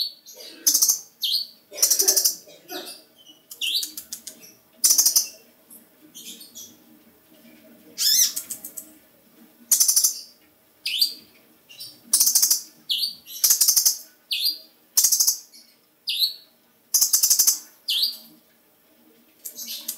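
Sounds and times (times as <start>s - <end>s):
small bird singing: 0.0s - 5.5s, 8.0s - 8.9s, 9.7s - 18.3s, 19.4s - 19.9s.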